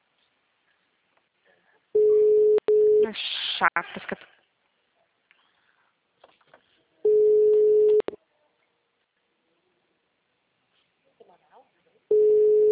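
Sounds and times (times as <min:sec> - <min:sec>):
telephone ringing tone while placing a call: 0:02.0 - 0:03.1, 0:07.1 - 0:08.1, 0:12.1 - 0:12.7
speech: 0:03.1 - 0:04.4.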